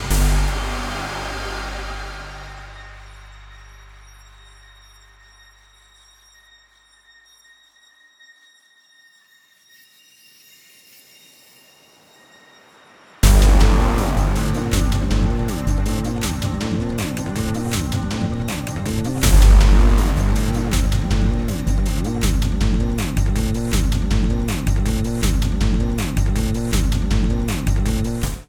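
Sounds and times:
fight music at 160 BPM: 0.0 - 4.0, 13.2 - 28.4.

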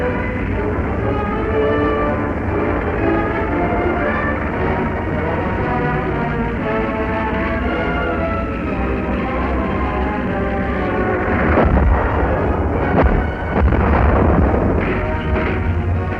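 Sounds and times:
continuous heavy rumble: 0.0 - 16.1
shellfire exploding against a French tank in a 1940 battle near the Somme: 11.3 - 16.1.

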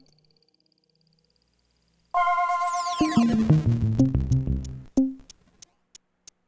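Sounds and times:
fight intro music: 2.2 - 4.9.

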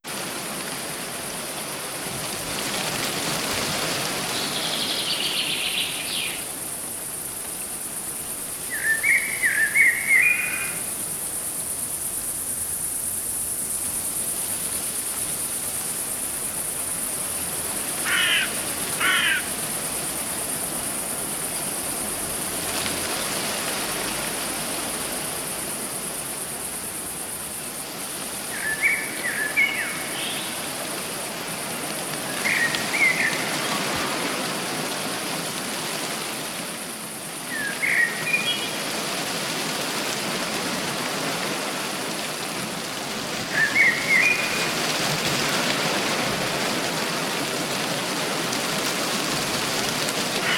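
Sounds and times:
forest ambience: 0.0 - 50.5.

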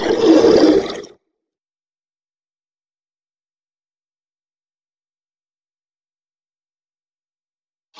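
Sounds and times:
monster death sound: 0.0 - 1.1.

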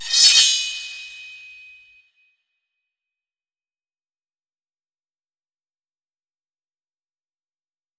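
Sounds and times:
sword skill effect: 0.0 - 1.6.

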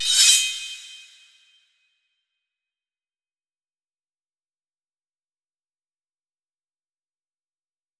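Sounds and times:
sword skill effect: 0.0 - 1.2.

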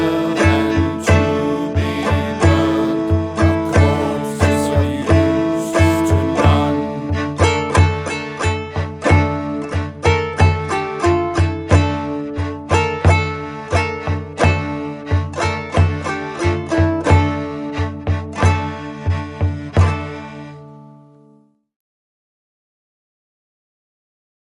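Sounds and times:
chorus singing: 0.0 - 8.0
drum: 0.0 - 8.0
kitara: 0.0 - 8.5
tagelharpa: 0.0 - 21.3.

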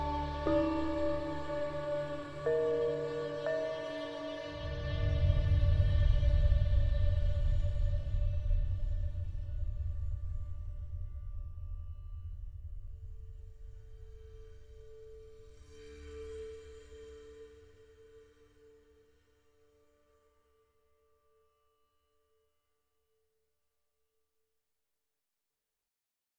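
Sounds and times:
abandoned building ambience: 0.0 - 11.2.

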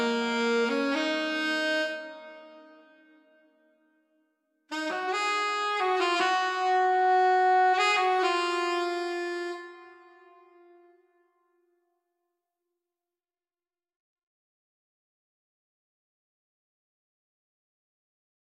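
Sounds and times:
saxophone playing: 0.0 - 3.3, 4.7 - 10.9.

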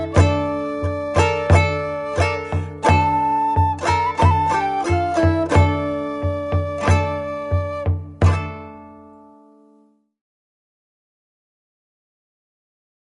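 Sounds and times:
drum: 0.0 - 8.8
flute: 0.0 - 8.9
guitar: 0.0 - 10.0.

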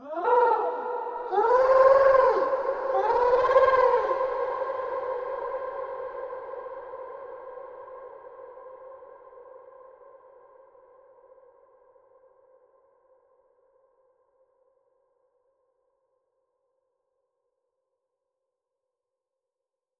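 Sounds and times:
animals: 0.0 - 4.7.

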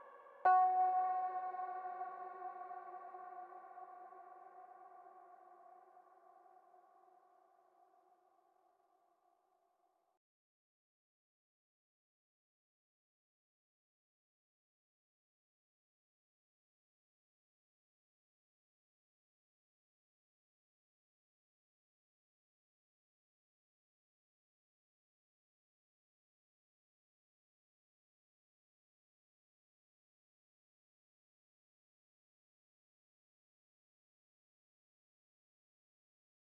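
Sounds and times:
synth soundtrack music: 0.0 - 4.9.

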